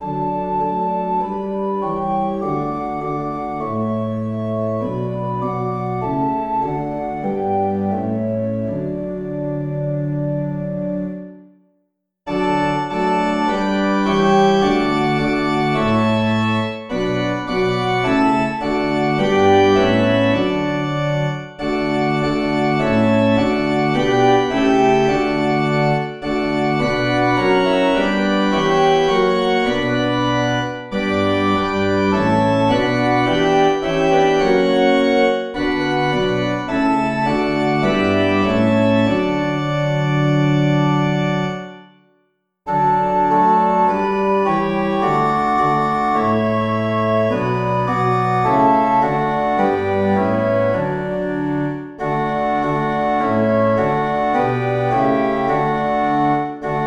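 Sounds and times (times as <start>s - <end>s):
organ: 0.0s - 11.4s, 12.3s - 41.9s, 42.7s - 56.8s.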